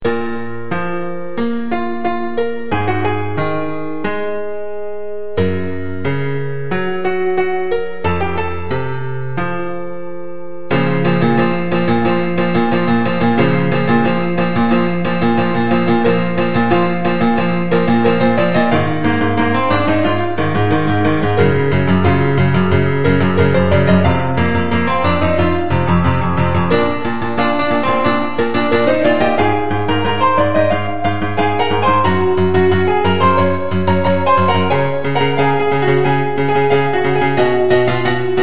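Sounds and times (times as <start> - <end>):
piano: 0.0 - 38.4.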